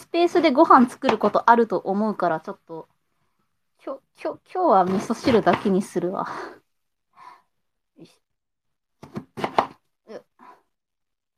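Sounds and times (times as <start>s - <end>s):
speech: 0.1s - 2.9s, 3.8s - 6.6s, 8.0s - 8.2s
knife chopping daikon radish on a table: 0.9s - 1.4s, 4.9s - 5.8s, 9.0s - 9.8s.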